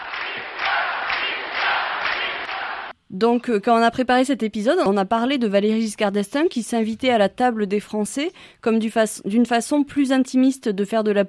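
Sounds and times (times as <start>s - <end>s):
large rally crowd roaring and cheering: 0.0s - 2.9s
speech: 3.1s - 11.2s.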